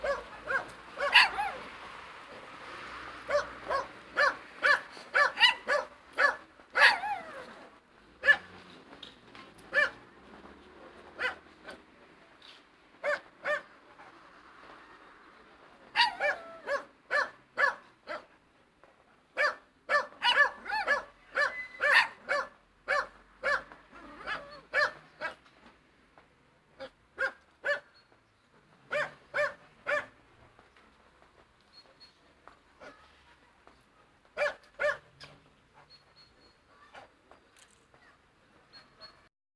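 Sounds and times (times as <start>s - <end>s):
dog barking: 0.0s - 1.7s, 3.3s - 7.3s, 8.2s - 8.6s, 9.7s - 10.0s, 11.2s - 11.4s, 13.0s - 13.7s, 16.0s - 18.3s, 19.4s - 25.4s, 27.2s - 27.9s, 28.9s - 30.2s, 34.4s - 35.1s.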